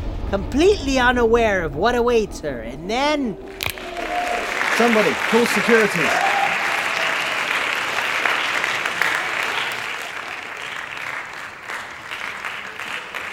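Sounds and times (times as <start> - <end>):
speech: 0.3 - 3.7, 4.8 - 6.3
small crowd applauding: 3.6 - 13.3
small crowd roaring: 5.9 - 7.2.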